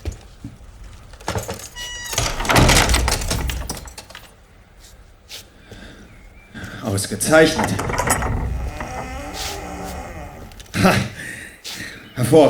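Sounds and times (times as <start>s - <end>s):
door closing: 1.3s - 4.2s, 7.3s - 11.0s
speech: 7.0s - 8.2s.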